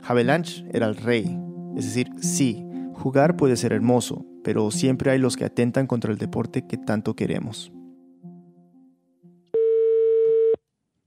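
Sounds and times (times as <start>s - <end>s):
speech: 0.1s - 7.8s
ringback tone of an outgoing telephone call: 9.6s - 10.6s.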